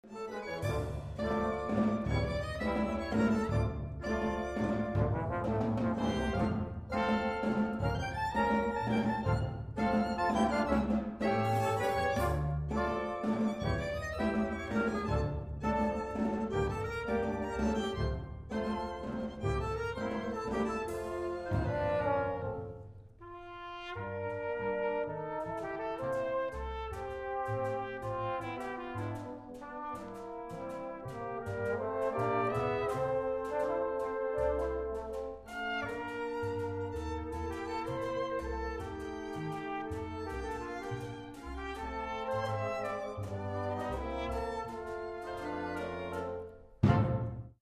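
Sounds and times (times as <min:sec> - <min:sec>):
orchestra playing a tango: 0:00.0 - 0:47.6.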